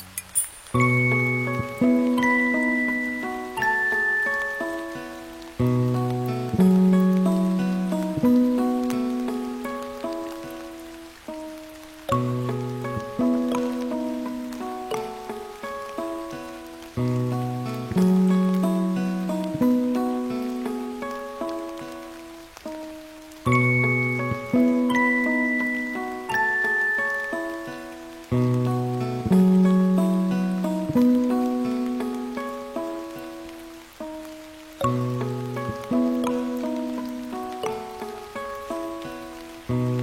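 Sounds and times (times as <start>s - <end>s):
gentle melody of clear ringing notes over low bass: 0.0s - 5.3s, 12.1s - 15.4s, 23.5s - 28.0s, 34.8s - 39.0s
soft steady rain hiss: 0.0s - 40.0s.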